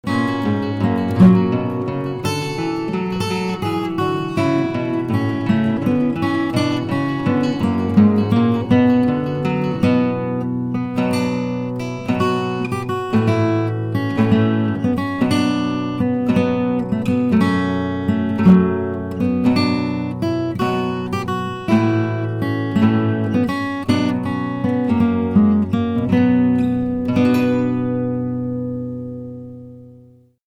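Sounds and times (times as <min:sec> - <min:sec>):
folk tune guitar duet: 0:00.0 - 0:30.4.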